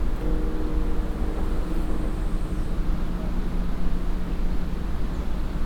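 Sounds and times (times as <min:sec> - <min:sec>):
bells of two churches ringing: 0:00.2 - 0:05.5.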